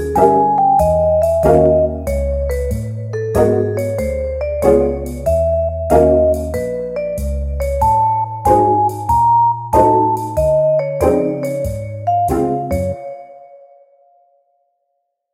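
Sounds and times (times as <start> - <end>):
chromatic jazz music: 0.0 - 13.4.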